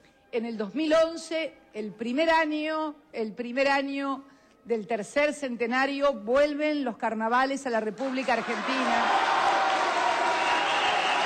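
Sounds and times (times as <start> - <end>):
speech: 0.3 - 9.2
crowd applauding: 8.0 - 11.2.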